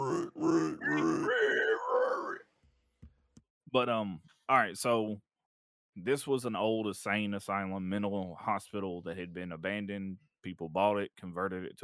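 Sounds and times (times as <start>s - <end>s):
person imitating pig grunts and squeals: 0.0s - 2.4s
speech: 3.7s - 5.3s, 6.0s - 11.8s.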